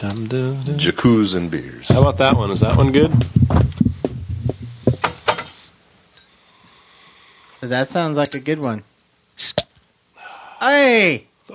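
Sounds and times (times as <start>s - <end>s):
speech: 0.0s - 3.6s, 7.6s - 9.6s, 10.6s - 11.5s
fridge door low thuds and clunks: 1.8s - 5.5s.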